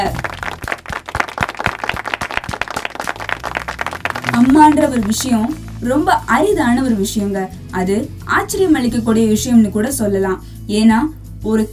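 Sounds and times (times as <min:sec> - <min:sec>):
audience applause: 0:00.1 - 0:05.8
speech: 0:04.9 - 0:11.7.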